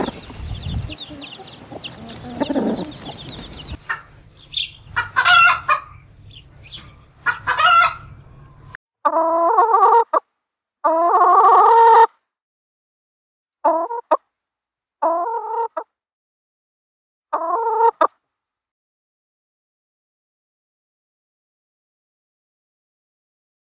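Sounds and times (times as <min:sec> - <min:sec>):
chicken: 0:00.0 - 0:06.0, 0:06.7 - 0:10.2, 0:10.8 - 0:12.1, 0:13.6 - 0:14.2, 0:15.0 - 0:15.9, 0:17.3 - 0:18.2.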